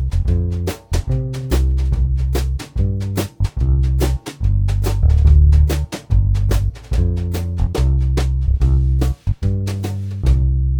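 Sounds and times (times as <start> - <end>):
ragtime accompaniment alone: 0.0 - 10.7.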